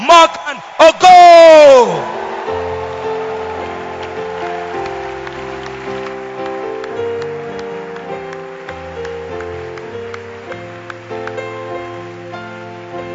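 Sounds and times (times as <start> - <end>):
audience clapping: 0.0 - 12.8.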